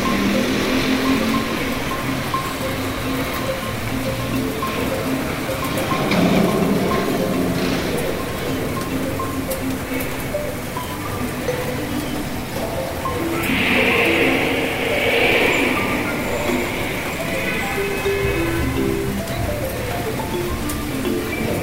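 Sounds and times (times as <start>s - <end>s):
passing traffic: 0.0s - 21.2s
rain falling on a city street: 0.0s - 21.6s
faint voices: 13.0s - 19.7s.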